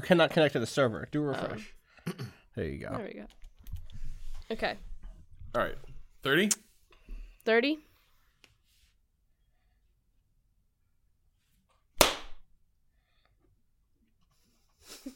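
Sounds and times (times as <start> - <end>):
speech: 0.0 - 3.4, 4.5 - 4.9, 5.5 - 6.6, 7.4 - 7.9
hand clap: 12.0 - 12.4.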